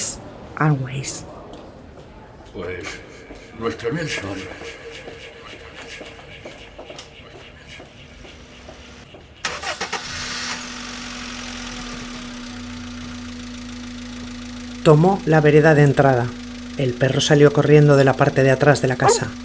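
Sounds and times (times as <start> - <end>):
speech: 0.6 - 1.4, 2.6 - 5.2, 14.8 - 19.4
laughter: 2.6 - 8.9
car engine starting and idling: 8.9 - 19.4.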